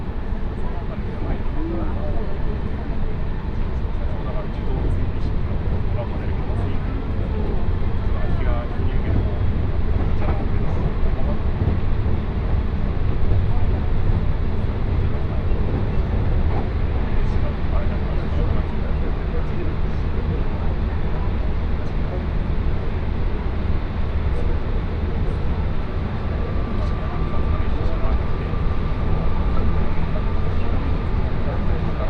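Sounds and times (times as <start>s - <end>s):
Tokaido Line special rapid train carriage rumble: 0.0s - 32.0s
faint murmuring voices: 0.0s - 32.0s.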